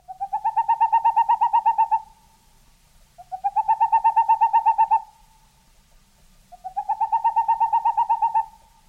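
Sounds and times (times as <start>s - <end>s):
Tengmalm's owl calling: 0.0s - 2.3s, 3.2s - 5.4s, 6.5s - 8.8s.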